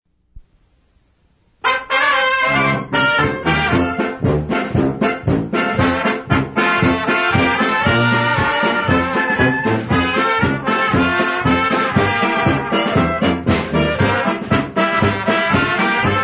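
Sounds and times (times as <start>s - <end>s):
polka music: 1.6s - 16.2s.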